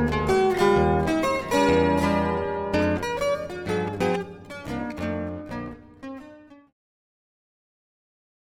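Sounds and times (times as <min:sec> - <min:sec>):
zither playing a jazz exercise: 0:00.0 - 0:06.7.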